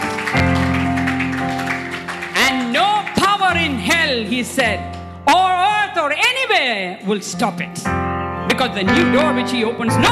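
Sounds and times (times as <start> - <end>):
audience clapping: 0.0 - 5.0
sustained keyboard or organ chords: 0.0 - 10.1
speech: 4.2 - 10.1.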